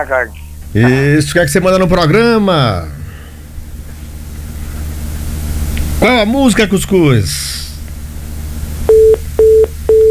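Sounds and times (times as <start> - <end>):
speech: 0.0 - 3.0, 6.0 - 7.7
faint hum: 0.0 - 10.1
disconnected-call tone on a radio call-in line: 8.9 - 10.1.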